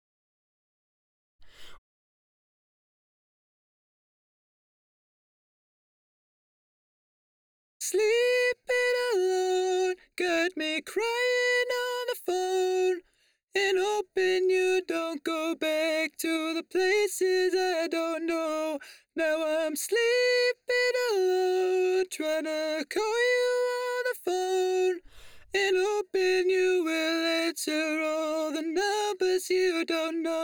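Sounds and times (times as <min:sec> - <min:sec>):
dry a cappella vocal harmony: 0:07.8 - 0:30.4.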